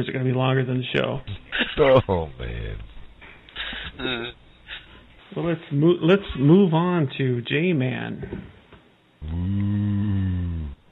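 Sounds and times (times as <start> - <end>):
speech: 0.0 - 2.9, 3.9 - 4.4, 5.3 - 8.5, 9.2 - 10.0
cow mating call moo: 9.2 - 10.8.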